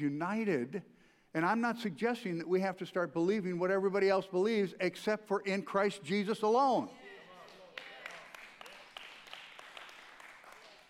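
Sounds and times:
speech: 0.0 - 7.0
faint audience applause: 7.3 - 10.8.

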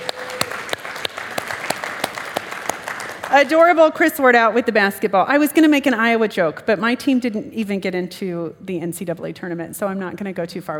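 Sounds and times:
audience applause: 0.0 - 3.6
speech: 3.3 - 10.7.

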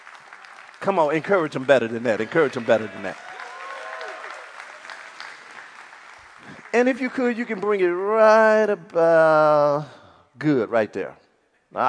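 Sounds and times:
audience applause: 0.0 - 7.8
speech: 0.8 - 3.2, 6.8 - 11.8.

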